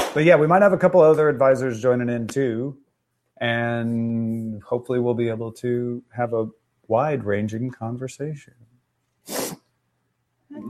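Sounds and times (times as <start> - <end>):
speech: 0.2 - 2.8, 3.4 - 8.7
person sniffing: 9.2 - 9.7.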